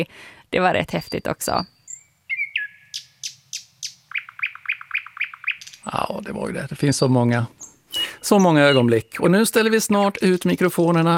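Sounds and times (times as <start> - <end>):
speech: 0.0 - 1.8, 6.2 - 7.6, 8.2 - 11.1
nightingale singing: 0.9 - 6.2, 7.5 - 10.4.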